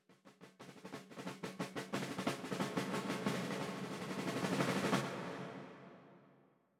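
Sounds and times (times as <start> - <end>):
interactive music: 0.0 - 6.7.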